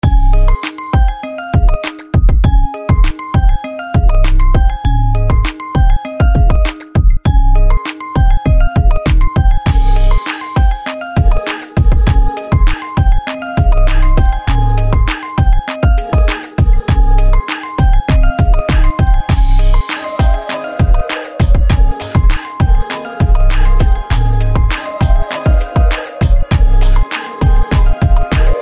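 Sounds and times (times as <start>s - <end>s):
funny remix music: 0.0s - 28.6s.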